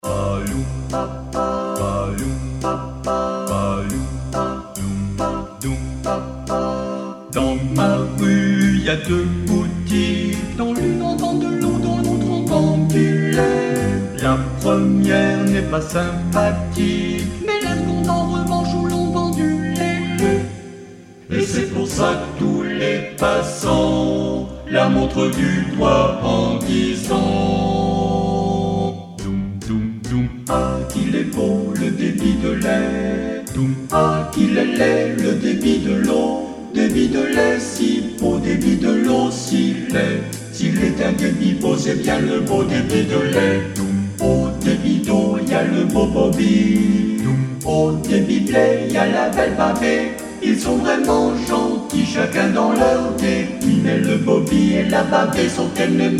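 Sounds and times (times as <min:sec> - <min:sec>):
jazz music: 0:00.0 - 0:56.1.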